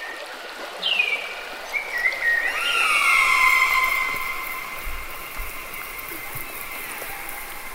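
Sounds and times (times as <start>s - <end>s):
birds chirping: 0.9s - 7.7s.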